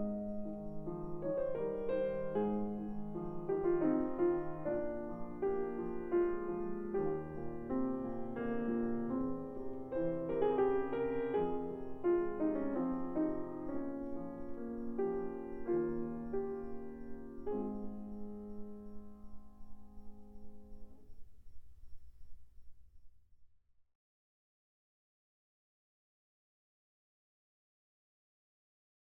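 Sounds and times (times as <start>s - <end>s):
piano piece in A-flat: 0.0s - 22.3s.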